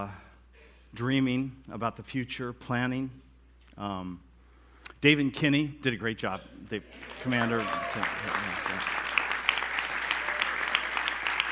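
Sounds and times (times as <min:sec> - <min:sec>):
speech: 0:00.0 - 0:00.2, 0:00.9 - 0:03.2, 0:03.8 - 0:04.3, 0:05.0 - 0:09.0
room full of people clapping: 0:06.7 - 0:11.4.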